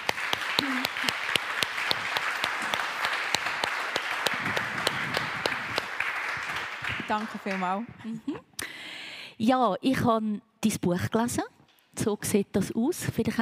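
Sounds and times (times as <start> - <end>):
audience applause: 0.0 - 7.8
speech: 7.1 - 8.5, 9.4 - 13.4.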